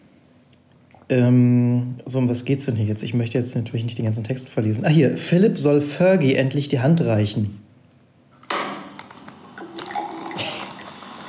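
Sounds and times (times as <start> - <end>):
speech: 1.1 - 7.6
artificial beer pouring sound from app Beer with me: 8.4 - 11.2.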